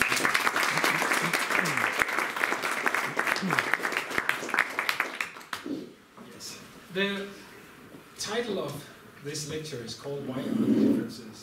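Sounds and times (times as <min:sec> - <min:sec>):
audience applause after a song at a lecture event: 0:00.0 - 0:05.7
speech: 0:07.0 - 0:07.4, 0:08.2 - 0:11.4.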